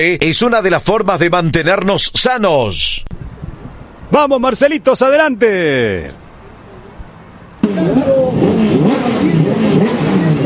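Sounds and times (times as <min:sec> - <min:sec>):
speech: 0:00.0 - 0:03.2, 0:04.1 - 0:06.2
Turismo Carretera racing car engines revving: 0:07.5 - 0:10.4.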